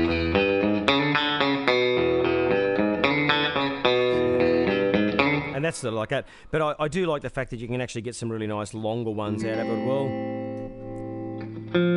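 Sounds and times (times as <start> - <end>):
electric guitar with slapback delay: 0.0 - 5.6, 9.3 - 11.9
speech: 5.7 - 10.4, 11.7 - 11.9.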